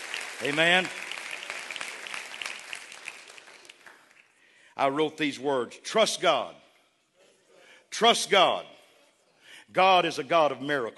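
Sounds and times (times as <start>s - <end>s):
audience clapping: 0.0s - 4.5s
speech: 0.4s - 1.0s, 4.8s - 6.6s, 8.0s - 8.7s, 9.7s - 10.9s.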